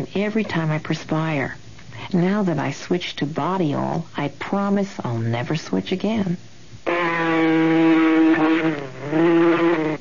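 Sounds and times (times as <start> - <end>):
speech: 0.0 - 7.0
mosquito buzzing: 6.8 - 9.9.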